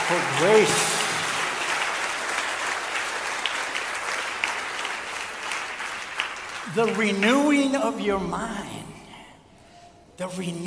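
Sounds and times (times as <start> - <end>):
audience applause: 0.0 - 8.0
speech: 0.1 - 1.0, 6.8 - 9.0, 10.2 - 10.6.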